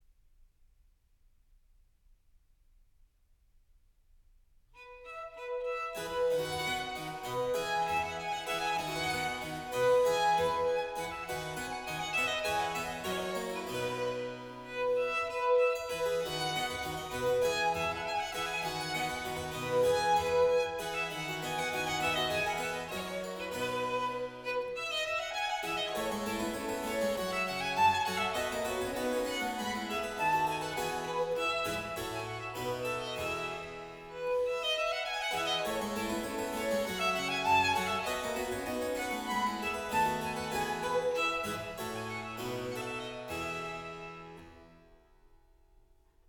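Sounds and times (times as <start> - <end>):
sonata gavotte allegro in F major: 4.8 - 45.2.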